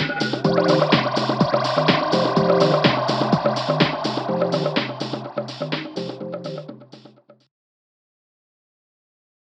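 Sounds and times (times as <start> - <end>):
boom box track loop: 0.0 - 7.2.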